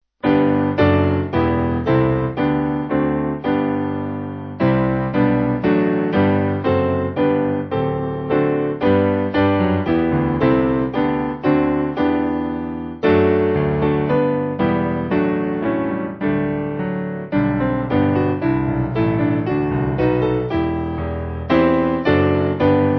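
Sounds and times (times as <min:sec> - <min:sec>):
piano backing: 0:00.2 - 0:22.9.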